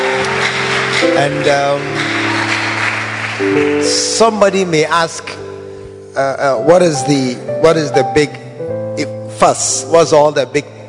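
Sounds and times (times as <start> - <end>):
audience clapping: 0.0 - 5.3
speech: 1.0 - 2.0, 3.4 - 5.5, 6.2 - 8.4, 9.0 - 10.8.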